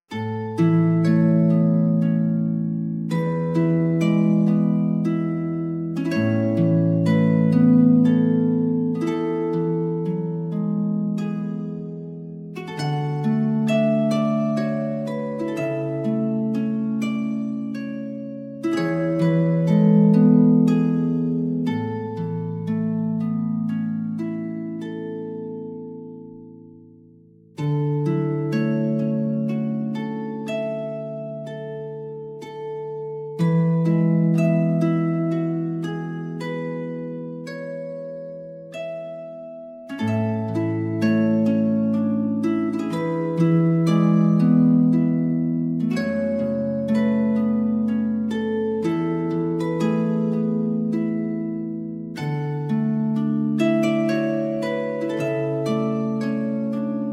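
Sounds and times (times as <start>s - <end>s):
harp: 0.0s - 57.1s.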